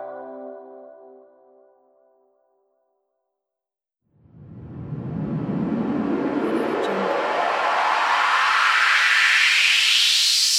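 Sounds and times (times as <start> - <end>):
noise risers: 4.2 - 10.5.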